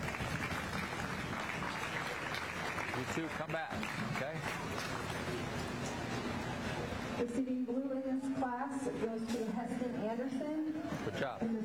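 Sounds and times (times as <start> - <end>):
spectators applauding winning showmen at a livestock show: 0.0 - 6.3
speech: 3.0 - 5.6, 7.2 - 11.6.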